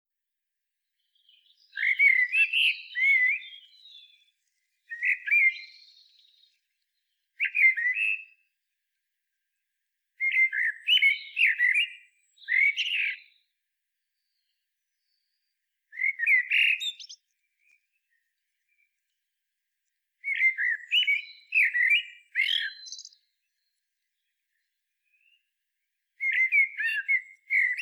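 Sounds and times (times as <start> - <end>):
common blackbird singing: 1.0 - 8.5, 10.2 - 13.5, 14.1 - 18.9, 20.2 - 25.5, 26.2 - 27.8.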